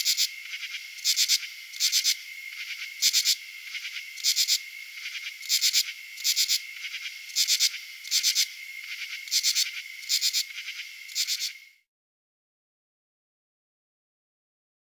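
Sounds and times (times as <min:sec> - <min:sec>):
male Pteryphylla camellifolia calls: 0:00.0 - 0:11.7.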